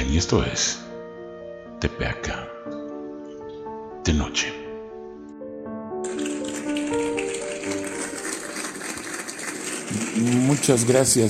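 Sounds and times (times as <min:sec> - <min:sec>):
speech: 0:00.1 - 0:00.8, 0:01.8 - 0:02.8, 0:04.0 - 0:04.6, 0:09.9 - 0:11.2
audience applause: 0:06.0 - 0:11.2.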